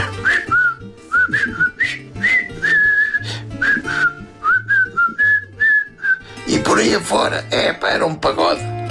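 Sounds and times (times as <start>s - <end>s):
whistled film soundtrack march: 0.2s - 6.4s
speech: 7.0s - 8.8s.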